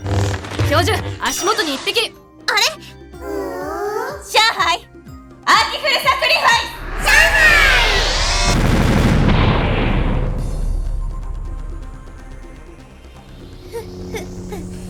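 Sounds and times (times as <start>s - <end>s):
doll used as a bomb exploding: 0.0s - 1.4s, 6.5s - 12.8s
speech: 0.7s - 3.6s, 4.3s - 4.9s, 5.5s - 7.4s.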